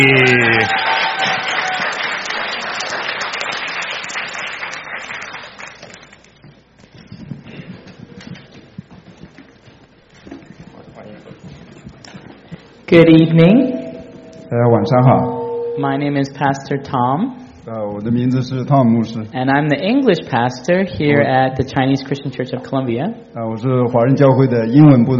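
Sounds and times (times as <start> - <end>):
speech: 0.0 - 0.3, 12.9 - 13.8, 14.5 - 25.1
cheers: 0.0 - 2.9
crowd applause: 0.0 - 5.8.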